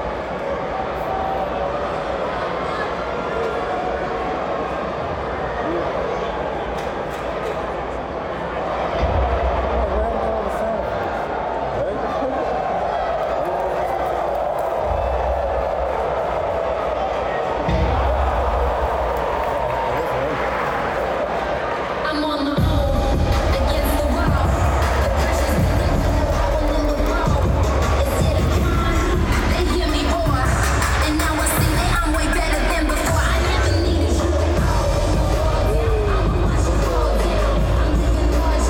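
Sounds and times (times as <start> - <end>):
WWE wrestling crowd roaring at the Barclays Center: 0.0 - 38.6.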